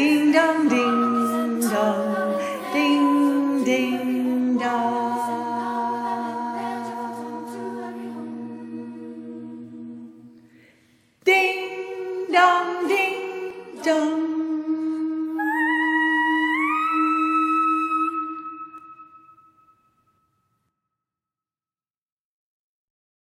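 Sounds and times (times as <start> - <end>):
alto voice singing a Christmas carol: 0.0 - 10.4, 11.3 - 19.3.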